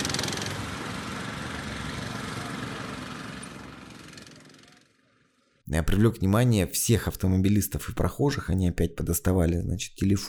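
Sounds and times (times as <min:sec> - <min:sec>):
small walk-behind tractor engine running: 0:00.0 - 0:04.9
speech: 0:05.7 - 0:10.2.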